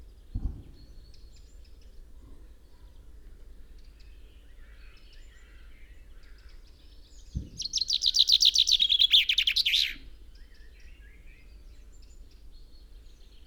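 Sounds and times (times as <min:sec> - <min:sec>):
common chaffinch Fringilla coelebs singing: 0:07.6 - 0:10.0.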